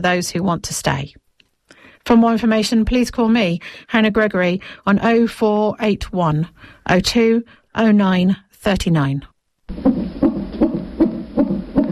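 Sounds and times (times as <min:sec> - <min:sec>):
speech: 0:00.0 - 0:01.2, 0:02.0 - 0:10.2
fetal heartbeat in the womb heard through a monitor: 0:09.7 - 0:11.9.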